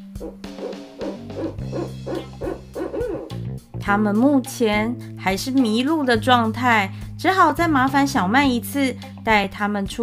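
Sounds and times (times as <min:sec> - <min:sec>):
owl hooting: 0:00.0 - 0:03.4
speech: 0:00.2 - 0:00.4, 0:03.9 - 0:10.0.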